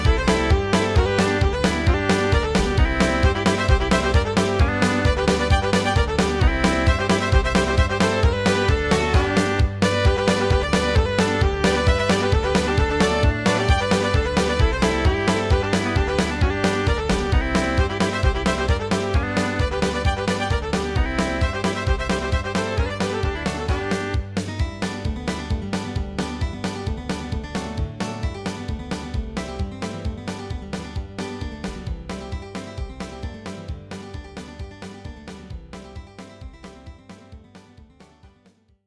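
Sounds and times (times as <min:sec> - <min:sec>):
bluegrass fiddle in G: 0:00.0 - 0:26.9
bluegrass banjo in G: 0:00.0 - 0:38.3.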